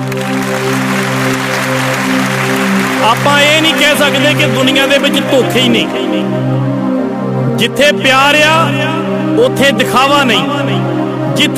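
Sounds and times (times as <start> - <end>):
audience clapping at a gathering: 0.0 - 6.0
speech: 3.0 - 6.8, 7.6 - 11.5.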